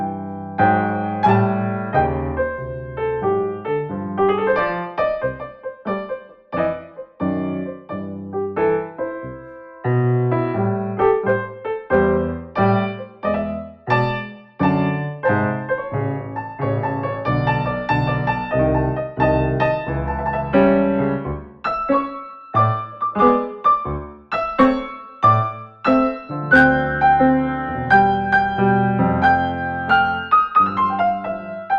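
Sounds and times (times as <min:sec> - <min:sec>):
blues music: 0:00.0 - 0:31.7.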